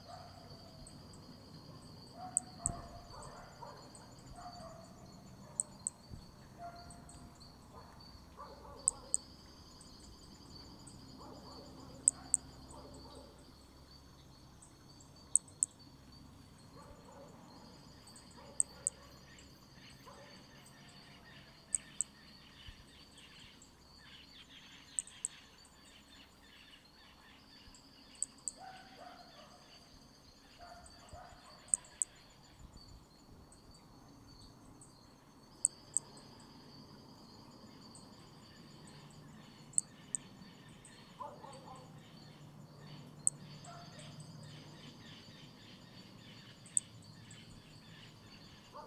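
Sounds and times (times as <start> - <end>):
faint chirps: 0.0 - 48.8
steady insect whine: 0.0 - 48.8
Hermogenes' toadlet clicking calls: 1.5 - 4.6, 5.6 - 7.4, 8.8 - 9.4, 11.5 - 13.1, 15.3 - 15.8, 18.6 - 19.0, 21.7 - 22.1, 24.8 - 25.4, 28.1 - 28.6, 31.6 - 32.2, 35.6 - 36.2, 39.5 - 41.7, 42.9 - 45.0, 46.4 - 48.6.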